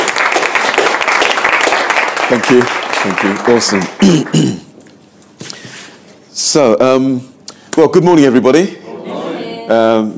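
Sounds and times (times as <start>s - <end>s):
audience applause welcoming a speaker: 0.0s - 4.4s
speech: 2.3s - 4.7s, 6.4s - 8.8s, 9.7s - 10.1s.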